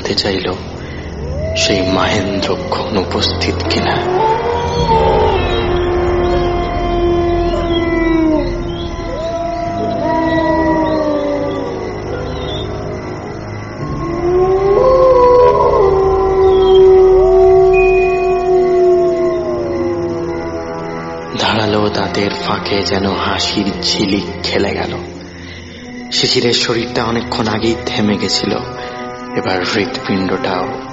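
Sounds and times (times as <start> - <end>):
speech: 0.1 - 0.7, 1.6 - 5.5, 22.2 - 25.1, 26.1 - 30.9
wolf howling at the moon: 1.0 - 21.3.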